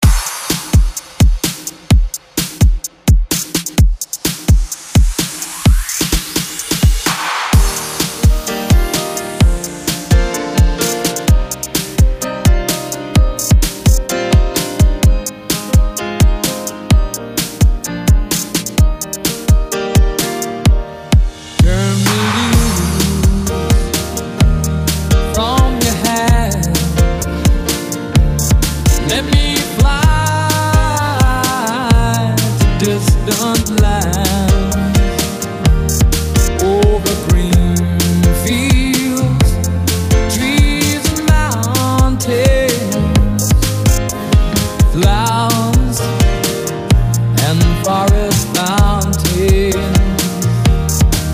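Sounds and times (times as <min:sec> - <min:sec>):
breakbeat at 128 BPM: 0:00.0 - 0:51.3.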